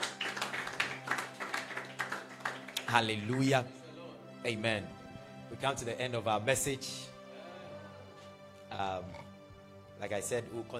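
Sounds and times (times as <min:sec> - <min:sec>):
audience hand clapping: 0:00.0 - 0:03.6
speech: 0:02.9 - 0:03.8, 0:04.4 - 0:07.1, 0:08.7 - 0:09.2, 0:10.0 - 0:10.7.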